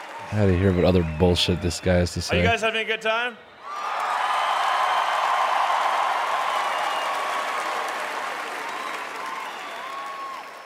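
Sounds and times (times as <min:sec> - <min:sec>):
crowd applauding: 0:00.0 - 0:02.6, 0:03.6 - 0:10.6
speech: 0:00.2 - 0:03.5.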